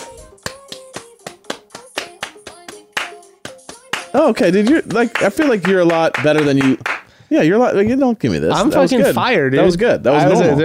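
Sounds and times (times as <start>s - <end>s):
hand clap: 0.2s - 7.1s
speech: 4.2s - 10.6s.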